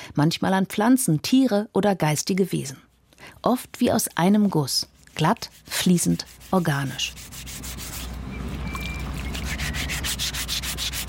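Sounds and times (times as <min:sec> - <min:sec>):
speech: 0:00.2 - 0:07.6
filing a stone sculpture: 0:05.0 - 0:08.1, 0:09.2 - 0:11.0.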